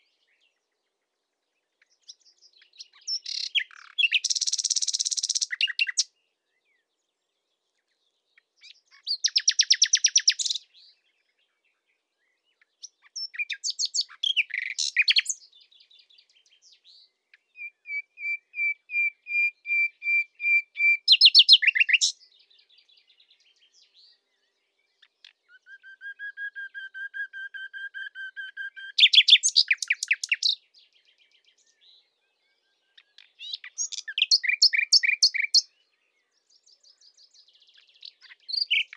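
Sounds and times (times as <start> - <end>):
common nightingale song: 2.9 - 6.1, 8.6 - 10.6, 13.1 - 15.4, 17.6 - 22.2, 25.0 - 30.6, 32.8 - 35.7, 37.0 - 38.9.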